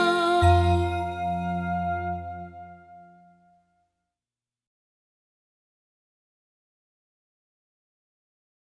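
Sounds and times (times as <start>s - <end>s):
song with words and music: 0.0s - 3.2s.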